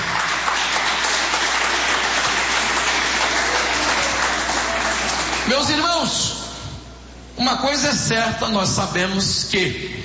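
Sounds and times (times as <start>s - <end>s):
audience clapping: 0.0s - 5.9s
speech: 5.5s - 6.4s, 7.4s - 10.0s.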